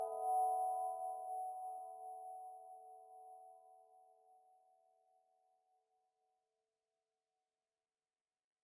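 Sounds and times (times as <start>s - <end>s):
little music box: 0.0s - 3.9s.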